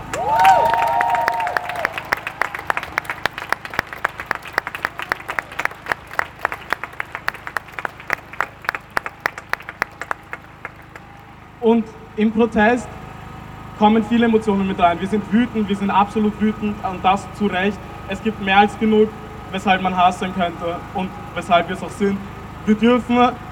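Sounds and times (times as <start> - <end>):
whistle and cheer from demonstration crowd: 0.0 - 3.2, 4.6 - 7.1, 8.8 - 11.4
demonstration crowd applauding: 0.0 - 11.6
speech: 11.7 - 13.0, 13.8 - 23.4.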